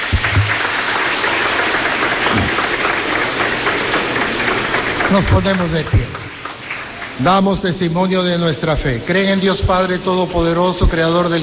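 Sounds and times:
audience applauding: 0.0 - 7.4
speech: 5.1 - 6.2, 7.2 - 11.4.

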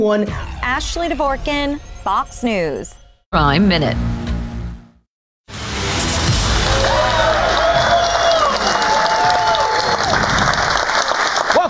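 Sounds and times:
speech: 0.0 - 4.2
studio audience clapping at a New York City late-night show: 6.4 - 11.6
studio audience whooping and shouting: 6.6 - 11.0.

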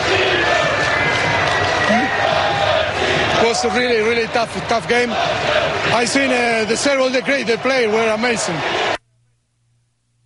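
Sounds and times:
large crowd cheering: 0.0 - 9.0
scattered shouts and whoops: 0.2 - 2.4
speech: 3.5 - 9.0.

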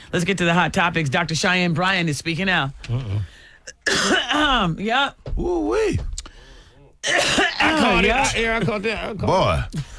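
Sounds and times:
speech: 0.1 - 6.1, 7.0 - 9.9
person coughing and choking: 3.7 - 4.6, 7.0 - 8.3.

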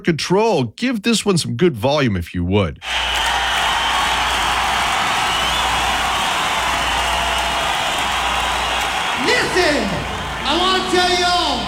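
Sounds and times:
speech: 0.0 - 3.2
large crowd applauding: 2.8 - 11.6.

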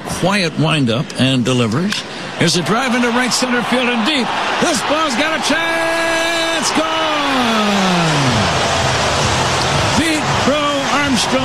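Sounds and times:
speech: 0.2 - 8.7, 11.2 - 11.4
stadium crowd roaring after a home run: 2.4 - 11.4.

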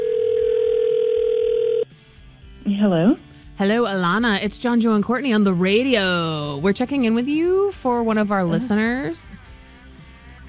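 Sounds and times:
telephone dial tone while calling a listener: 0.0 - 1.9
speech: 2.6 - 9.4.

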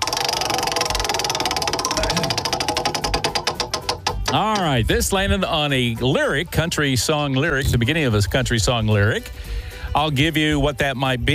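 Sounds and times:
prize wheel spun for a country music trivia game: 0.0 - 5.1
speech: 4.3 - 11.3.

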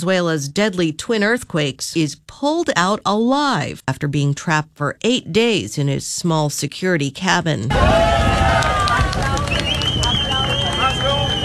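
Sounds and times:
speech: 0.0 - 9.6
large crowd cheering: 7.7 - 11.4
whistles: 9.4 - 11.4.

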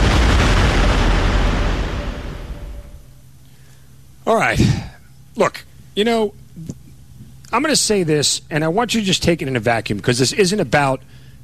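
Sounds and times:
volcano exploding: 0.0 - 3.2
speech: 4.3 - 6.8, 7.5 - 11.2.

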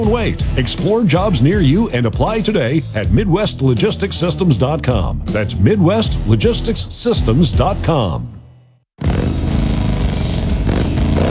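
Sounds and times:
speech: 0.0 - 8.4
motorcycle engine revving: 9.0 - 11.2.

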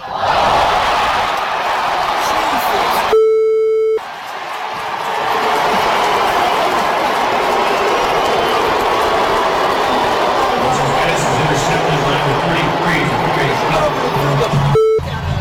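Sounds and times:
stadium crowd booing a quarterback: 0.0 - 15.3
loud electronic tone: 14.7 - 15.1.

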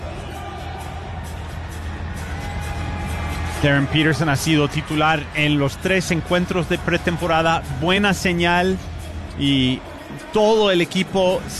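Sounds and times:
crowd applauding as a game begins: 0.0 - 8.5
speech: 3.6 - 11.5.

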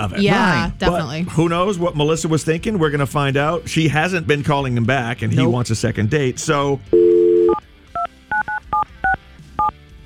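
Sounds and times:
speech: 0.0 - 7.1
telephone dial tone: 7.0 - 9.7.

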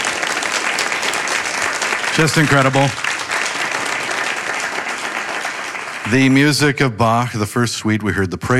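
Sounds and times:
concert audience applause and cheering: 0.0 - 6.9
speech: 2.2 - 3.1, 6.1 - 8.5.

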